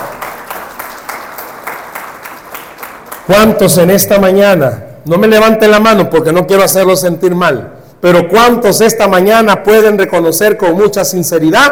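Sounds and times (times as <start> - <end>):
audience applause: 0.0 - 3.3
speech: 3.3 - 11.6.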